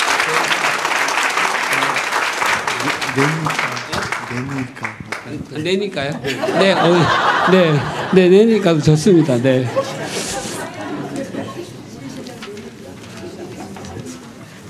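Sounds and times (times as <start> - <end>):
audience applause: 0.0 - 5.5
speech: 2.8 - 3.7, 4.3 - 9.8
laughter: 5.6 - 12.0.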